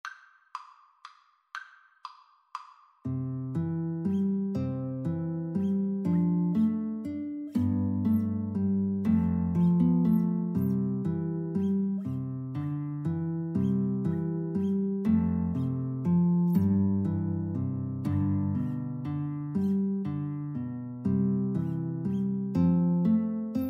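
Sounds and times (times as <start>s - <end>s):
guitar: 3.0s - 23.6s.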